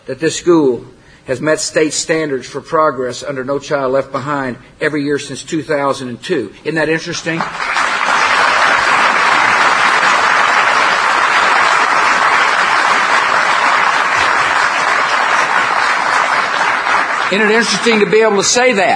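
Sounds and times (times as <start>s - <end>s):
speech: 0.1s - 7.7s, 17.3s - 18.9s
crowd applause: 7.4s - 18.6s.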